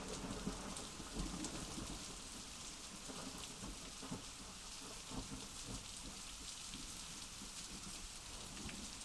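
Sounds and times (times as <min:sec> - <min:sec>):
thunderstorm: 0:00.0 - 0:06.2
storm: 0:00.0 - 0:08.9.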